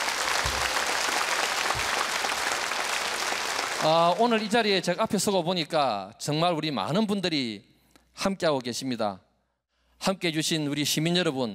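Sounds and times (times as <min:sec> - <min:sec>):
audience applause: 0:00.0 - 0:04.5
speech: 0:03.8 - 0:09.2, 0:10.0 - 0:11.5.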